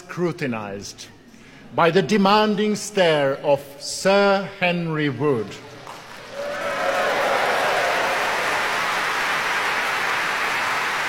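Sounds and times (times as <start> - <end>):
speech: 0.1 - 5.7
audience applause at an orchestral concert in a large hall: 5.8 - 11.0.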